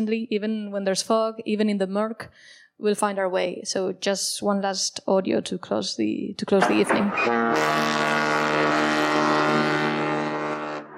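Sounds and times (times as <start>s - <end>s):
speech: 0.0s - 9.0s
foghorn blast: 6.9s - 10.9s.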